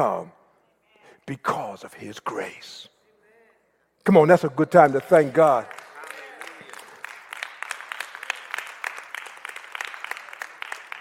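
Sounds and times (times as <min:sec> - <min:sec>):
speech: 0:00.0 - 0:00.4, 0:01.3 - 0:02.9, 0:04.0 - 0:05.8
audience applauding: 0:04.7 - 0:10.9.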